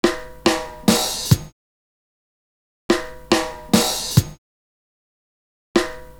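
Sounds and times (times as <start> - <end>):
simple breakbeat loop: 0.0 - 1.5, 2.9 - 4.4, 5.8 - 6.1.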